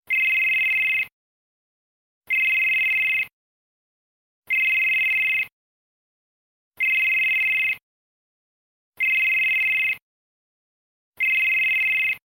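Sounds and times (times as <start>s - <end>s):
telephone: 0.1s - 1.1s, 2.3s - 3.3s, 4.5s - 5.5s, 6.8s - 7.8s, 9.0s - 10.0s, 11.2s - 12.2s.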